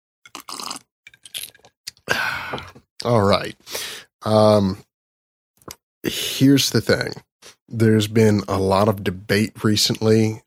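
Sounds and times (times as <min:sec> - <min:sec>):
ice cubes in a glass of bourbon and water: 0:00.3 - 0:01.7
speech: 0:02.5 - 0:04.9, 0:06.0 - 0:10.4.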